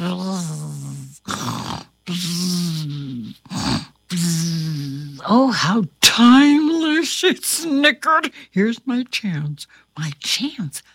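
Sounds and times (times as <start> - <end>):
person imitating snoring: 0.0 - 5.2
speech: 5.3 - 10.9.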